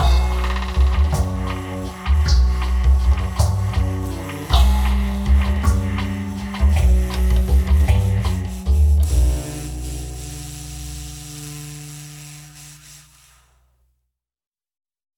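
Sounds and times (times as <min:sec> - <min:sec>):
dancehall music: 0:00.0 - 0:10.9.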